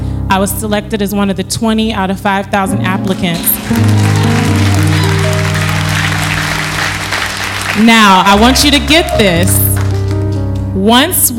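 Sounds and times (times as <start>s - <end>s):
speech: 0.3s - 4.1s, 7.8s - 9.6s, 10.8s - 11.3s
audience applause: 3.5s - 9.2s.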